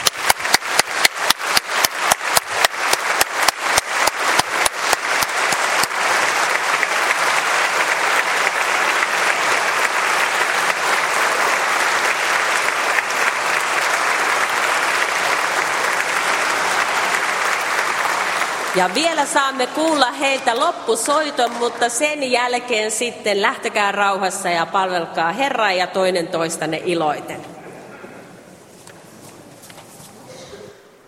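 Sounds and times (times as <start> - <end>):
audience applause: 0.0 - 20.2
speech: 18.8 - 27.6.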